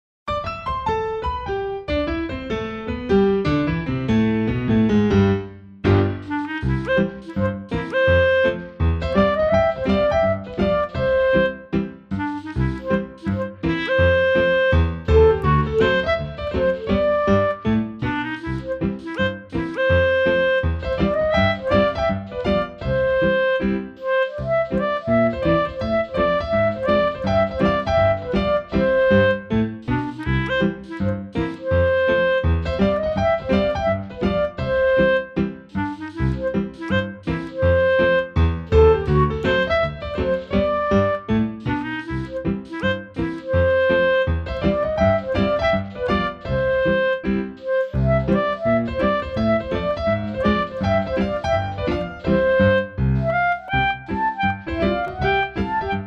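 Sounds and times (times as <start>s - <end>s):
piano: 0.3s - 56.0s.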